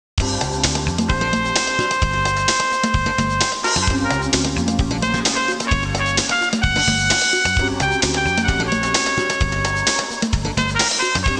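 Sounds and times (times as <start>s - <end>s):
jazz music ringtone: 1.1s - 11.3s.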